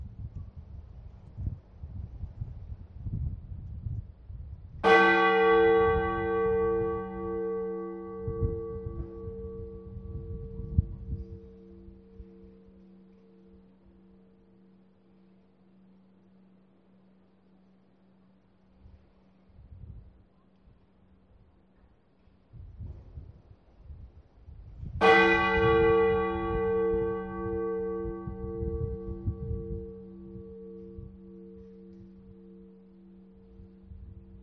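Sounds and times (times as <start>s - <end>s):
bell: 4.8s - 13.7s, 25.0s - 34.4s.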